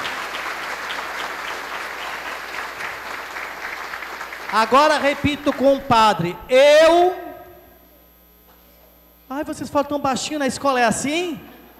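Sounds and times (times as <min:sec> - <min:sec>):
audience applause: 0:00.0 - 0:05.8
speech: 0:04.5 - 0:07.2, 0:09.3 - 0:11.5.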